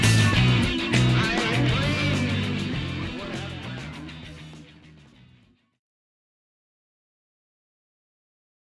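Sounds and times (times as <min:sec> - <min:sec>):
blues music: 0:00.0 - 0:05.7.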